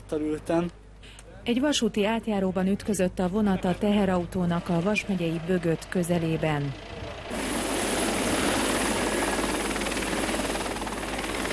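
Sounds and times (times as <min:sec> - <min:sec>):
speech: 0:00.1 - 0:07.4
ambulance helicopter: 0:03.6 - 0:11.5.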